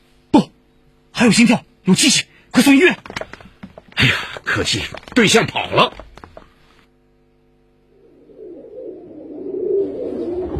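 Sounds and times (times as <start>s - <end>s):
faint steady hum: 0.0s - 10.5s
speech: 1.2s - 3.2s, 4.1s - 6.1s
pigeons cooing: 7.9s - 10.5s.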